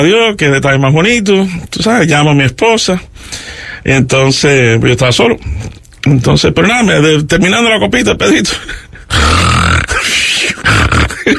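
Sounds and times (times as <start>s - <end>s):
speech: 0.0s - 9.6s
man imitating snoring with his voice: 9.1s - 11.3s.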